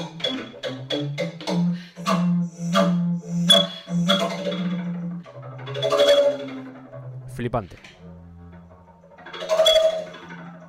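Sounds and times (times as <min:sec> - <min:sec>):
solo double bass with plucked notes and resonant low tones: 0:00.0 - 0:10.6
speech: 0:07.4 - 0:08.0.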